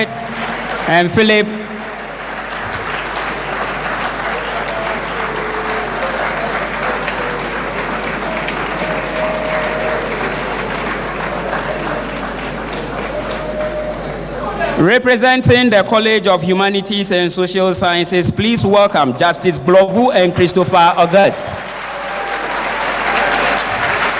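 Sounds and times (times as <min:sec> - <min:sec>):
speech: 0:00.0 - 0:01.6, 0:14.8 - 0:21.7
audience applause at a ceremony: 0:00.0 - 0:14.8, 0:21.0 - 0:24.1.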